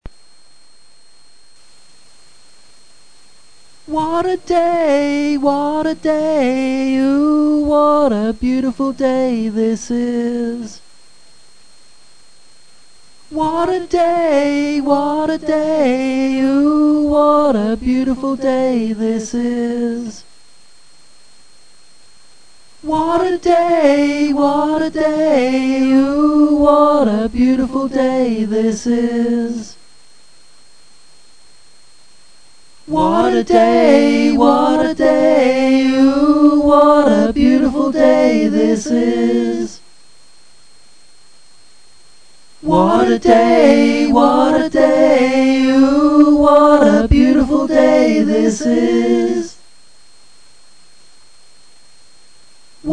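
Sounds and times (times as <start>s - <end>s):
combined vocal passes singing: 3.9s - 10.8s, 13.3s - 20.2s, 22.8s - 29.8s, 32.9s - 39.8s, 42.6s - 49.6s.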